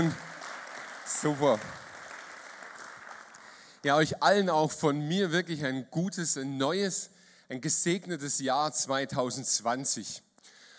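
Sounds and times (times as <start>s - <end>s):
audience applause: 0.0s - 3.8s
speech: 1.2s - 1.8s, 3.8s - 10.3s.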